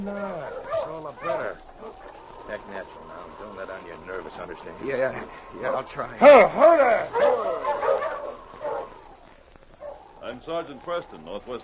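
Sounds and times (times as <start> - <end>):
speech: 0.0 - 7.8, 10.3 - 11.6
dog named King giving gruff barks: 0.4 - 2.3, 5.6 - 6.0, 6.7 - 9.1, 9.8 - 10.2.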